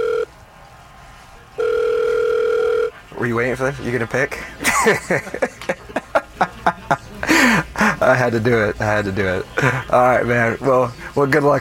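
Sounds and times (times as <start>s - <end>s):
phone call dialing tone: 0.0s - 0.3s, 1.6s - 3.0s
speech: 3.2s - 5.9s, 8.1s - 11.6s
laughter: 4.3s - 10.4s.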